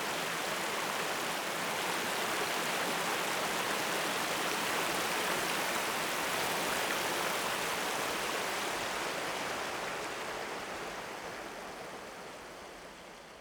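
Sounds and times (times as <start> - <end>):
stream at dawn in a valley: 0.0 - 13.3.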